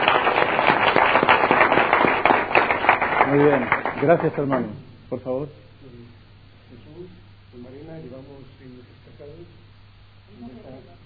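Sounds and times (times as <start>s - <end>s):
audience applause: 0.0s - 4.7s
speech: 3.3s - 5.6s.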